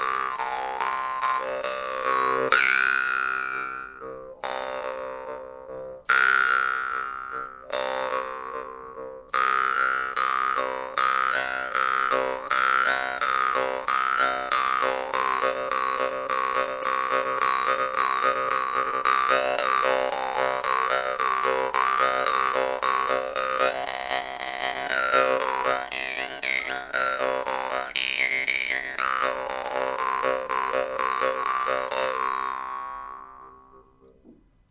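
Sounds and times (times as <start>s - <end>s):
jaw harp: 0.0s - 34.2s.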